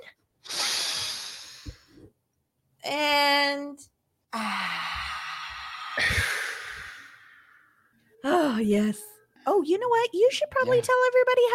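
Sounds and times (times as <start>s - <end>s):
deep breath in and blown out: 0.4s - 2.1s, 4.3s - 7.8s
speech: 2.8s - 4.6s, 8.6s - 11.5s.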